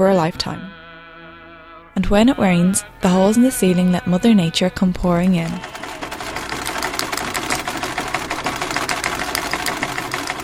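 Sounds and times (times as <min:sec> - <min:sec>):
speech: 0:00.0 - 0:00.7, 0:02.0 - 0:05.7
sole-stitching machine motor hum: 0:04.8 - 0:10.4
Singer sole-stitching machine running: 0:05.1 - 0:10.4.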